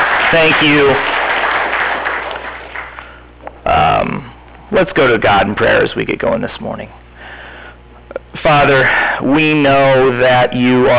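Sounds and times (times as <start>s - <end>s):
audience round of applause: 0.0s - 3.2s
speech: 0.3s - 1.2s, 4.7s - 7.0s, 8.4s - 10.9s.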